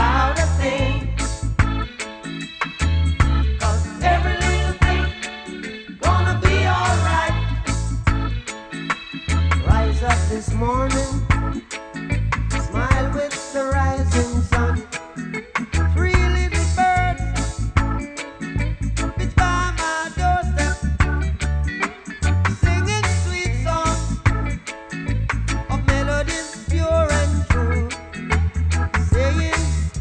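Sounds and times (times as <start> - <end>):
reggae music: 0.0 - 29.9.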